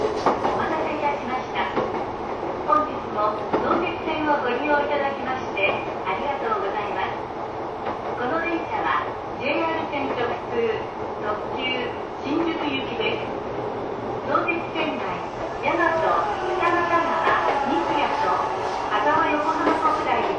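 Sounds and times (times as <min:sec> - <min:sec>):
Sotetsu 12000 series train running from Ebina to Shinjuku: 0:00.0 - 0:20.3
voices chattering: 0:14.4 - 0:20.3.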